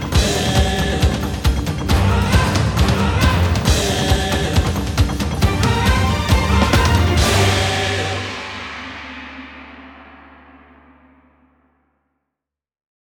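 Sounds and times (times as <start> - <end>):
game background music: 0.1 - 8.3.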